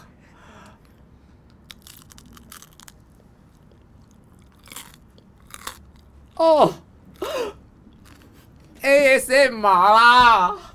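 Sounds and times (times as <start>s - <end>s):
crunchy bites into a crispy canelé: 1.5s - 6.4s
speech: 6.4s - 6.8s, 9.1s - 10.6s.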